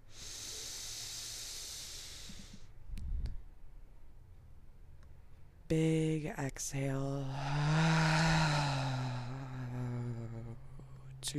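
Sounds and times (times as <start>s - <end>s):
inhale through the nose during a guided breathing exercise: 0.1s - 2.7s, 7.3s - 9.8s
speech: 5.7s - 8.1s.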